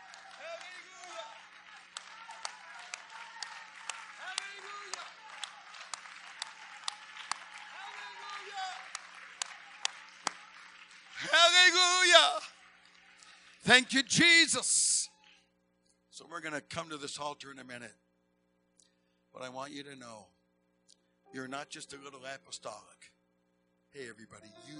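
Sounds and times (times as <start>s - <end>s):
audience clapping hands: 0.0s - 14.6s
speech: 13.7s - 14.8s, 16.4s - 18.0s, 19.4s - 20.4s, 21.3s - 23.0s, 23.9s - 24.7s.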